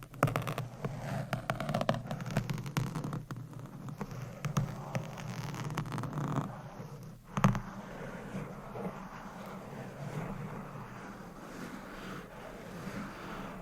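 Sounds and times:
scratching and tapping: 0:00.0 - 0:13.5.

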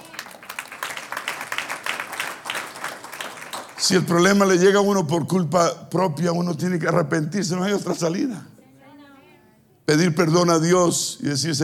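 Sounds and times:
applause: 0:00.0 - 0:04.6
speech: 0:03.8 - 0:08.5, 0:09.9 - 0:11.6.

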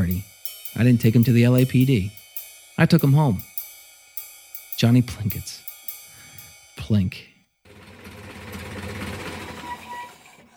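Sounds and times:
speech: 0:00.8 - 0:02.2, 0:02.8 - 0:03.5, 0:04.8 - 0:05.6, 0:06.9 - 0:07.3
film projector reel running: 0:07.7 - 0:10.5.

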